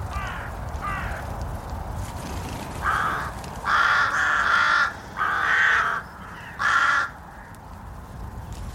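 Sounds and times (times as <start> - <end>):
rooks cawing: 0.0 - 1.5, 2.7 - 7.7.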